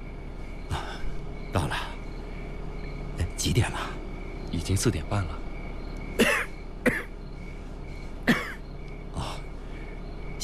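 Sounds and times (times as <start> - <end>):
faint steady hum: 0.0 - 10.4
speech: 3.4 - 5.4
man coughing: 6.2 - 7.1, 8.2 - 8.6.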